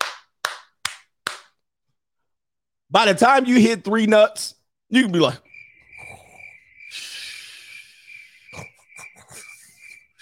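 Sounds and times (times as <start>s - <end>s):
hand clapping: 0.0s - 1.6s
speech: 2.9s - 5.5s.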